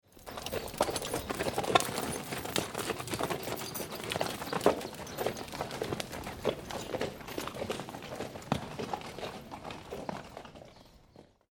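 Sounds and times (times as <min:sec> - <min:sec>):
horse hooves clattering on dry gravel: 0:00.1 - 0:11.4.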